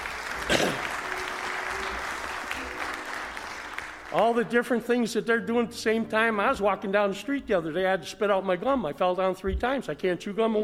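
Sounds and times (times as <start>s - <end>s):
faint crowd murmur: 0.0s - 3.4s
audience applause for a bell choir: 0.0s - 4.5s
speech: 4.1s - 10.6s.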